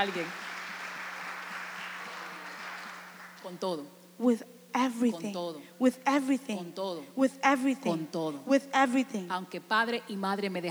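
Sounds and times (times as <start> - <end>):
speech: 0.0 - 0.4, 3.4 - 10.6
crowd applauding: 0.0 - 3.6
low steady hum: 0.0 - 10.6.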